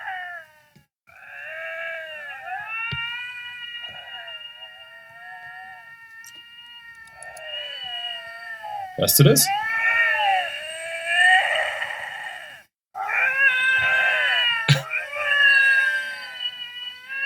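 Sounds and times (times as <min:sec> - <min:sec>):
two lynxes yowling and caterwauling in the wild: 0:00.0 - 0:17.2
small clicks: 0:05.4 - 0:08.0
speech: 0:09.0 - 0:09.7.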